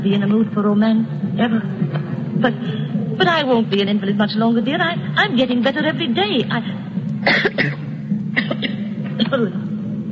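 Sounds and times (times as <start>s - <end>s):
speech: 0.0s - 7.8s, 9.2s - 9.6s
woman coughing: 7.2s - 9.5s.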